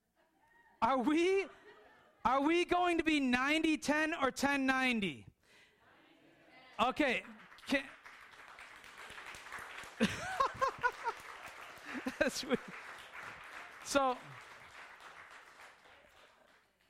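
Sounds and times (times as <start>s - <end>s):
speech: 0.8s - 1.6s, 2.2s - 5.3s, 6.8s - 8.0s, 10.0s - 10.2s, 12.2s - 12.8s, 13.9s - 14.4s
laughter: 1.0s - 2.3s, 9.9s - 13.0s
audience clapping hands: 6.8s - 16.8s.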